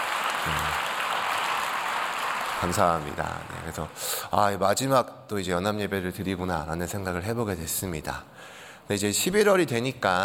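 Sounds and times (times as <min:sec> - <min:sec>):
audience applause: 0:00.0 - 0:04.0
speech: 0:02.6 - 0:10.2.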